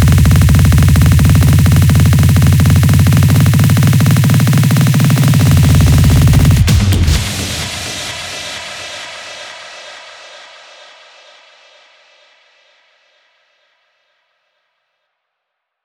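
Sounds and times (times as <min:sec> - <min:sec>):
music loop: 0:00.0 - 0:07.2.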